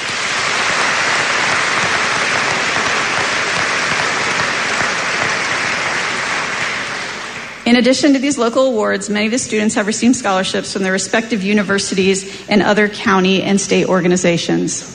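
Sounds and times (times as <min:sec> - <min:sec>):
audience applause: 0:00.0 - 0:07.7
speech: 0:07.7 - 0:14.9.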